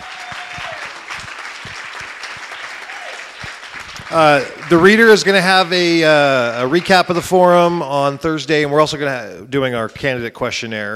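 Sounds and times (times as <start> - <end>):
audience applause for candidates: 0.0 - 7.5
speech: 4.1 - 10.9.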